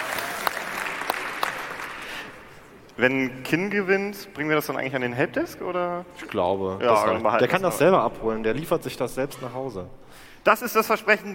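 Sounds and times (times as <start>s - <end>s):
audience applause: 0.0s - 2.6s
speech: 3.0s - 11.3s.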